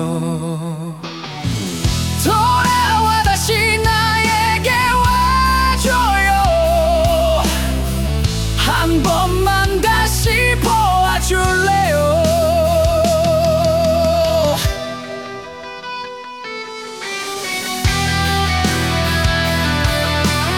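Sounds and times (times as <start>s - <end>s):
rock ballad: 0.0s - 20.5s.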